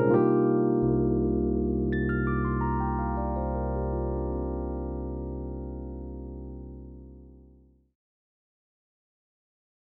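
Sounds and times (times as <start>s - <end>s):
Rhodes electric piano panning: 0.0s - 7.6s.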